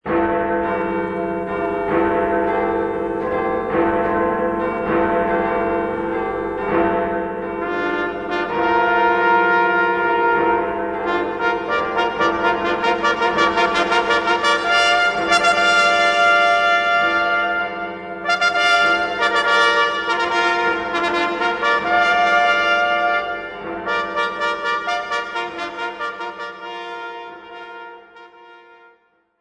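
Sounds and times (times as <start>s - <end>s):
bells: 0.1s - 27.6s
brass fanfare: 7.6s - 29.0s.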